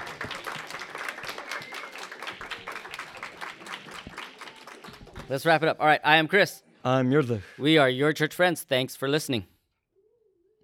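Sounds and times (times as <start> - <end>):
small group clapping: 0.0 - 5.7
speech: 5.3 - 9.5.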